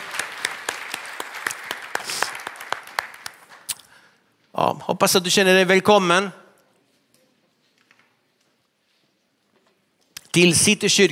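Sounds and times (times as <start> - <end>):
audience applause: 0.0 - 3.7
speech: 4.6 - 6.4, 10.4 - 11.1.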